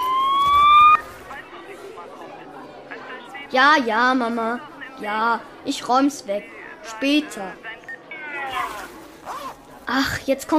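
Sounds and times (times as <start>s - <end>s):
siren-like mobile phone ringtone: 0.0s - 1.0s
speech: 3.5s - 7.7s, 9.9s - 10.5s.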